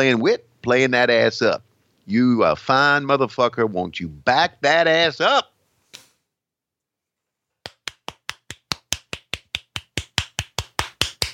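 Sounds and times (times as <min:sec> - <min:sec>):
speech: 0:00.0 - 0:05.5
hand clapping: 0:07.6 - 0:11.3.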